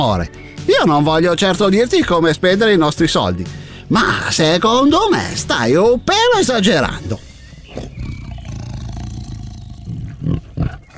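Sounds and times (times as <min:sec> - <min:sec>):
speech: 0:00.0 - 0:07.9
tiger roaring: 0:07.4 - 0:10.9.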